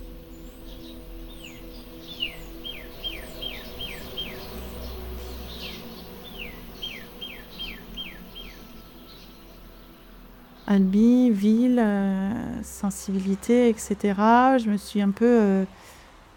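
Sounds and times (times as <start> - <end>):
birds chirping: 0.0 - 12.6
speech: 10.7 - 15.8.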